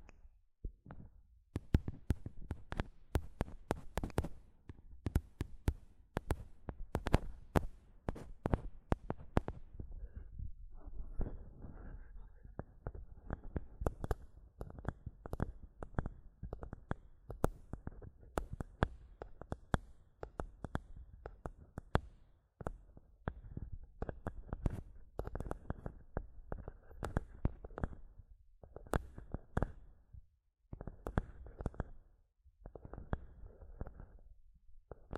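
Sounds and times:
fingers tapping on a microphone: 0.0s - 9.9s, 12.5s - 29.9s, 30.7s - 32.0s, 32.6s - 34.2s, 34.9s - 35.1s.

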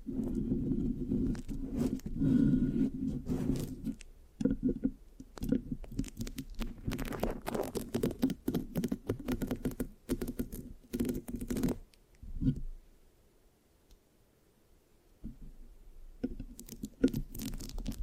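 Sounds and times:
microphone scratching with sticky tacky crackles: 0.0s - 12.7s, 16.4s - 18.0s.

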